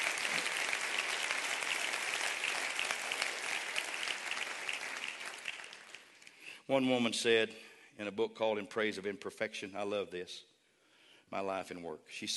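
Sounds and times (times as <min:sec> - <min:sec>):
audience clapping hands: 0:00.0 - 0:06.5
speech: 0:06.7 - 0:10.5, 0:11.3 - 0:12.3.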